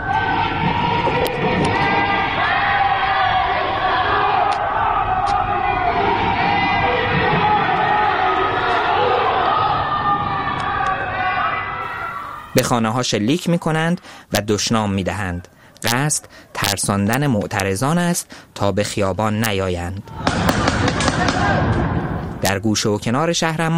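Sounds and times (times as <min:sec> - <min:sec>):
protest slogans chanted from apartment windows: 0:00.0 - 0:12.5, 0:20.0 - 0:22.2
speech: 0:12.6 - 0:23.7.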